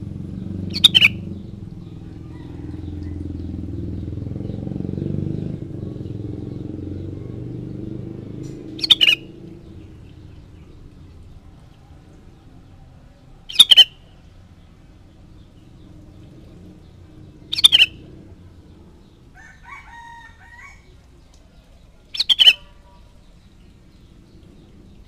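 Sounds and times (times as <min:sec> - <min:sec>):
sooty-headed bulbul chattering: 0:00.4 - 0:03.0, 0:08.3 - 0:11.3, 0:13.4 - 0:14.1, 0:16.0 - 0:21.0, 0:21.6 - 0:25.0.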